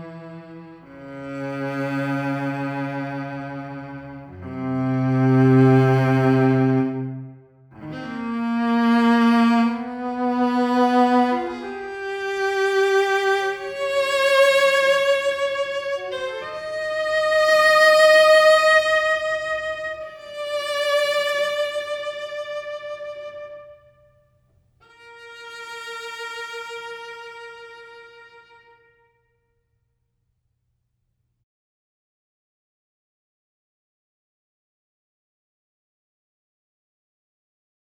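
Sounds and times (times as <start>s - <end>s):
solo cello suite: 0.0s - 24.2s, 24.8s - 29.2s.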